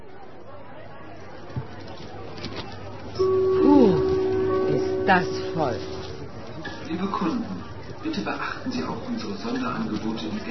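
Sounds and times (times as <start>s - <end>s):
indistinct crowd chatter in a busy department store: 0.0s - 10.5s
sustained electronic tone with a warbling, gliding pitch: 3.2s - 6.2s
speech: 5.1s - 5.9s, 6.9s - 10.5s.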